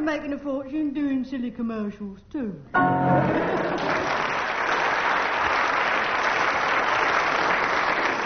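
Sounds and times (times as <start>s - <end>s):
speech: 0.2s - 4.3s
audience applause: 3.2s - 8.2s.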